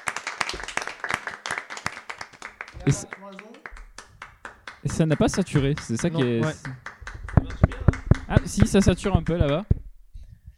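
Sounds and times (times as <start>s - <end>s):
podcast hosts clapping: 0.0s - 9.8s
speech: 2.9s - 3.3s, 4.8s - 6.8s, 8.3s - 9.7s.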